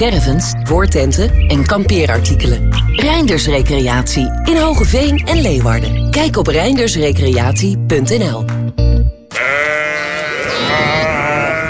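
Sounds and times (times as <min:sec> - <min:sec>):
speech: 0:00.0 - 0:08.6
sheep bleating: 0:09.3 - 0:11.6.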